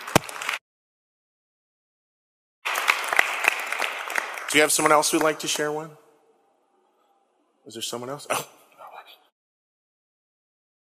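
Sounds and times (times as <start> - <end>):
audience applause: 0.0 - 0.6, 2.6 - 5.6
speech: 4.5 - 6.0, 7.7 - 8.6.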